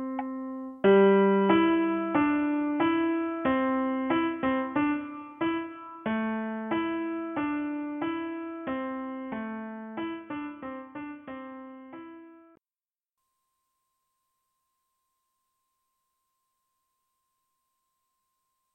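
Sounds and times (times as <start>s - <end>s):
piano: 0.0s - 12.6s.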